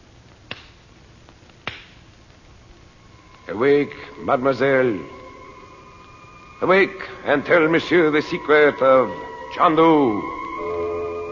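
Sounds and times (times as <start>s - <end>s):
light hand clap: 0.5s - 0.8s
speech: 3.5s - 5.2s, 6.6s - 10.4s.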